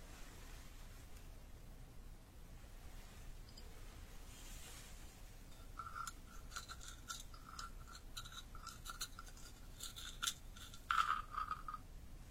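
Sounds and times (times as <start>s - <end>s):
soft steady hiss: 0.0s - 12.3s
Traditional Chinese medicine pounded with scraping and tapping strikes: 5.5s - 11.8s.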